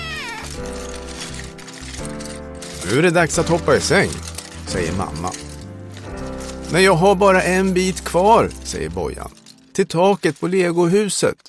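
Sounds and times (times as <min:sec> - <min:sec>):
pet cat meowing: 0:00.0 - 0:00.6
speech: 0:00.6 - 0:01.4, 0:02.0 - 0:05.4, 0:06.7 - 0:11.4.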